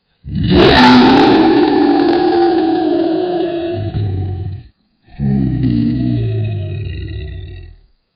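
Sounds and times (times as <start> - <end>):
kaiju roars: 0.3 - 7.8.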